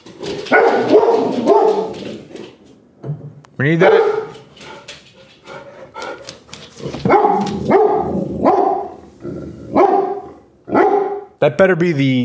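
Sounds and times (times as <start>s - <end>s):
dog barking at the door: 0.4s - 2.0s, 3.8s - 4.4s, 7.0s - 9.0s, 9.7s - 11.4s
speech: 3.6s - 4.1s, 11.6s - 12.2s.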